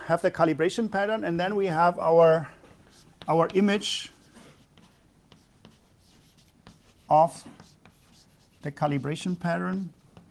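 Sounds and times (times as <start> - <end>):
speech: 0.1 - 2.6, 3.2 - 4.2, 7.1 - 7.6, 8.6 - 10.0
writing equations by hand during a lecture: 2.8 - 10.2.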